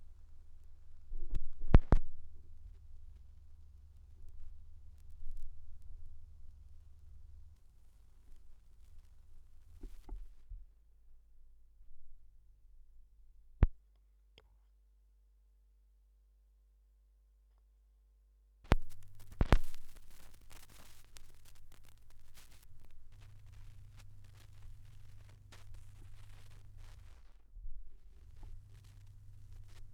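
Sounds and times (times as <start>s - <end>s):
vinyl record noise: 0.0s - 10.5s, 18.7s - 29.9s.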